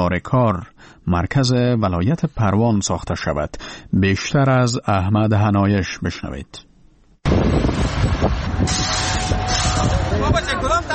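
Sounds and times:
speech: 0.0s - 10.9s
heavy construction machinery working: 7.3s - 10.9s.

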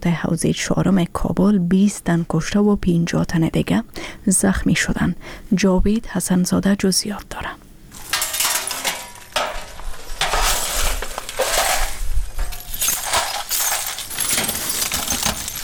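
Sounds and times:
speech: 0.0s - 7.6s
broken glass shards being gathered up: 7.9s - 15.6s.

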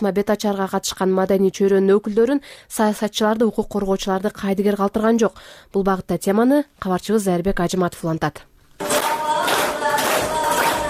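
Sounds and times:
speech: 0.0s - 8.5s
hall audience clapping along to a song: 8.8s - 10.8s
young woman singing a tremulous song: 8.8s - 10.8s.

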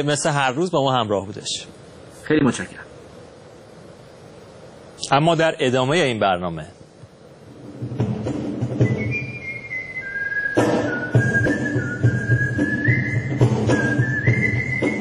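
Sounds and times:
speech: 0.0s - 2.9s, 5.1s - 6.8s
low hum: 0.0s - 14.9s
whistlers whistling melody at the first gathering of whistle performers in Japan: 8.6s - 14.9s.

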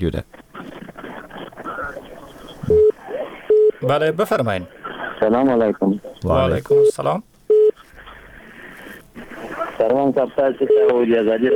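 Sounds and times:
speech: 0.0s - 0.4s, 3.8s - 7.3s, 9.8s - 11.5s
telephone call cut off tone: 2.7s - 3.7s.

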